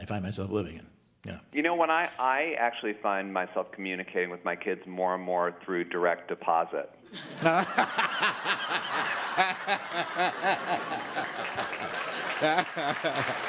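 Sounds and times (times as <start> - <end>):
speech: 0.1 - 13.4
audience laughing and chuckling: 7.1 - 13.4
audience applauding: 7.8 - 13.4.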